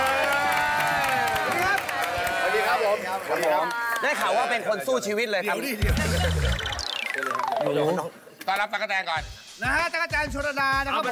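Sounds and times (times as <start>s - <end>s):
shouts and whoops: 0.0s - 2.8s
crowd applauding: 0.0s - 4.4s
speech: 3.2s - 6.6s, 7.6s - 11.1s.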